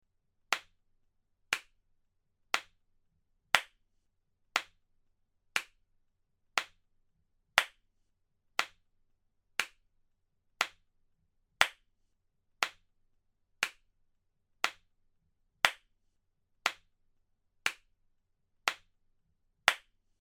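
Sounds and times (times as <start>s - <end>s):
single clap: 1.5s - 1.8s, 2.5s - 2.7s, 3.6s - 3.8s, 4.6s - 4.8s, 5.6s - 5.8s, 7.6s - 7.8s, 8.6s - 8.8s, 9.6s - 9.8s, 11.6s - 11.8s, 12.6s - 12.8s, 13.6s - 13.8s, 15.6s - 15.9s, 17.6s - 17.9s, 18.7s - 18.9s, 19.7s - 19.9s.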